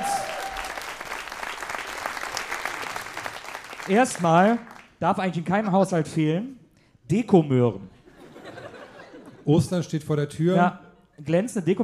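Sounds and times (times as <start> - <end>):
audience applause: 0.0 - 4.9
speech: 3.9 - 8.0, 9.5 - 11.8
laughter: 8.0 - 9.6.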